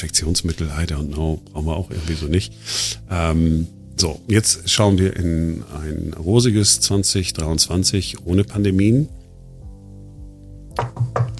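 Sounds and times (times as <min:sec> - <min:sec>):
speech: 0:00.0 - 0:09.2
knocking on wood: 0:10.8 - 0:11.3.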